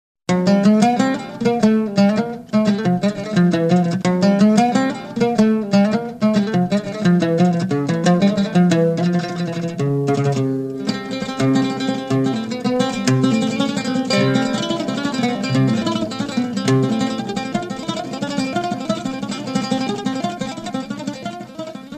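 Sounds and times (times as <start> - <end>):
oud: 0.3 - 21.9.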